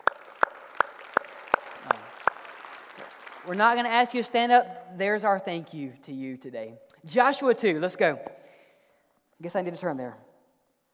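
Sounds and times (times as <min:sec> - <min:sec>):
audience applause: 0:00.0 - 0:04.2
speech: 0:03.4 - 0:08.4, 0:09.4 - 0:10.2.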